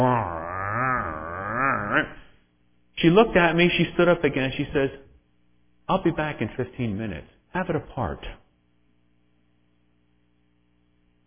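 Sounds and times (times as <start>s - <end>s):
voice imitating an old car engine: 0.0s - 2.3s
speech: 3.0s - 5.1s, 5.9s - 8.4s.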